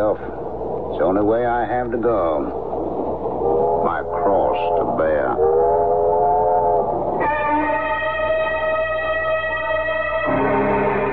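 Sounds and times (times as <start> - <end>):
train rumbling on rails: 0.0 - 8.4
speech: 1.0 - 2.7, 3.3 - 5.7
train whistle: 5.4 - 11.1.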